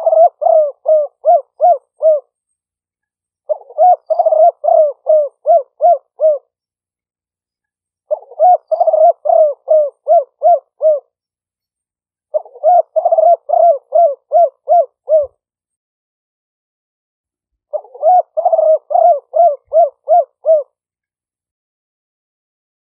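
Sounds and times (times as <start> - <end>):
spotted dove cooing: 0.0 - 2.4, 3.4 - 6.5, 8.1 - 11.2, 12.3 - 15.4, 17.7 - 20.8.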